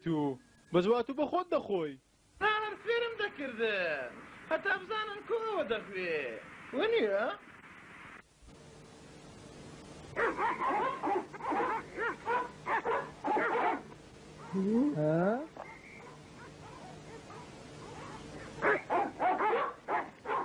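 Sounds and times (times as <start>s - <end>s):
speech: 0.0s - 2.1s, 2.9s - 7.5s, 10.2s - 13.9s, 14.5s - 15.6s
cartoon dog in a Kurdish animated series barking and whining: 10.2s - 13.8s, 16.4s - 20.4s.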